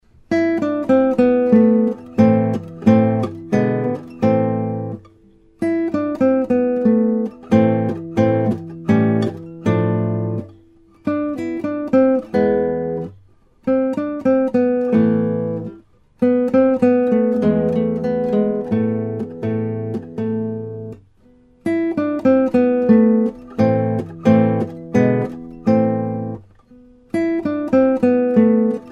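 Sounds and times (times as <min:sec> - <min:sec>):
guitar piece: 0:00.0 - 0:28.9.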